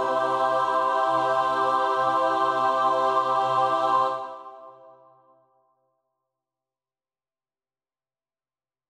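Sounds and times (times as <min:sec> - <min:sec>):
midi sacred music: 0:00.0 - 0:05.0.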